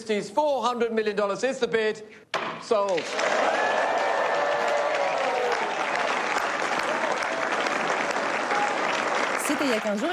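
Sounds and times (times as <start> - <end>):
speech: 0.1 - 3.9, 9.6 - 10.1
applause after an auction sale: 2.8 - 10.1.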